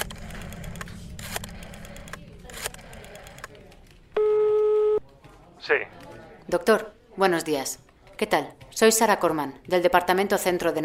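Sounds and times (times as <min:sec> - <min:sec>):
telephone line tone while a call to the coroner is placed: 0:04.2 - 0:05.0
speech: 0:05.7 - 0:10.8.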